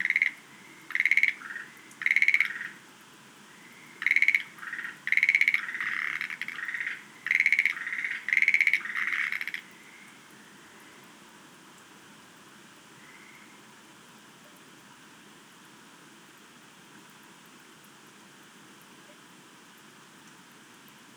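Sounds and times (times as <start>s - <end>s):
Schlegel's green tree frog calling: 0.0s - 2.9s, 3.5s - 11.0s.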